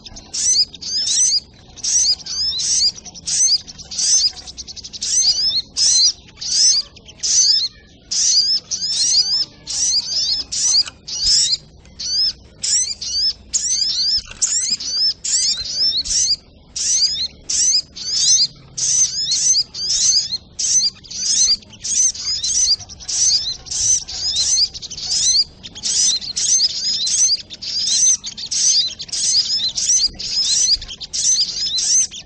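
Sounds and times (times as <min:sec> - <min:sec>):
crimson sunbird twittering: 0:00.0 - 0:32.2.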